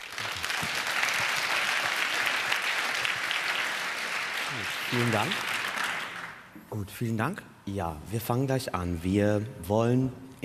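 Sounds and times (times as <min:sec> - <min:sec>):
audience applause: 0:00.0 - 0:06.5
speech: 0:04.6 - 0:05.5, 0:06.7 - 0:10.4.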